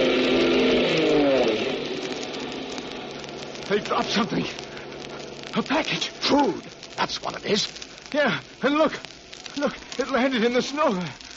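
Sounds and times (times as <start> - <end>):
army plane engine approaching: 0.0 - 5.5
speech: 3.7 - 4.6, 5.6 - 11.2.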